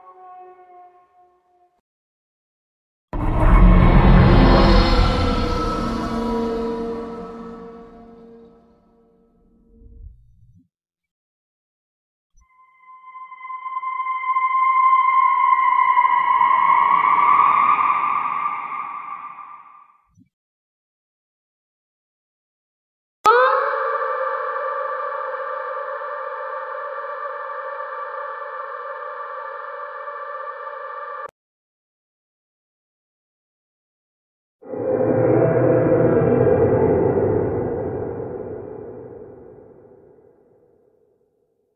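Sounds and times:
creepy horror sound effects: 3.2 - 8.7, 12.5 - 19.8, 23.3 - 31.3, 34.6 - 40.5.

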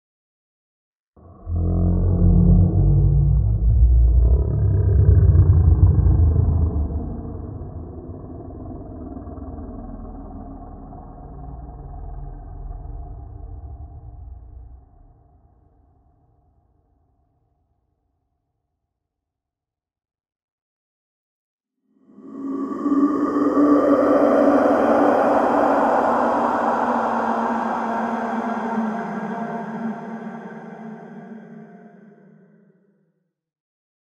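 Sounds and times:
scary horror sounds: 1.2 - 15.6, 22.0 - 32.5.

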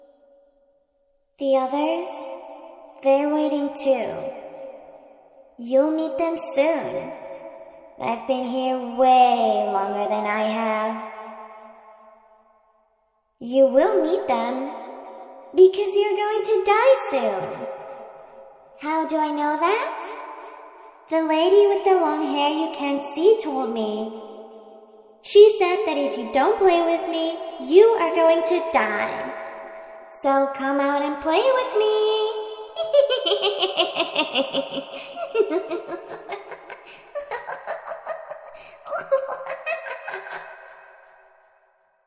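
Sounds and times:
creepy little girl talking: 1.4 - 2.3, 3.0 - 4.2, 5.6 - 7.1, 8.0 - 11.0, 13.4 - 14.7, 15.6 - 17.6, 18.8 - 20.1, 21.1 - 24.1, 25.3 - 29.3, 30.1 - 40.5
creepy little girl laughing: 32.8 - 40.8.

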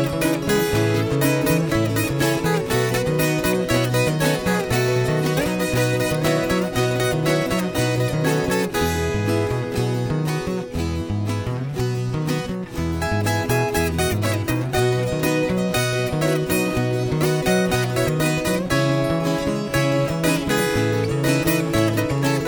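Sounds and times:
viola rasqueado strumming in Rasquiado Cuiabano style: 0.0 - 22.4.

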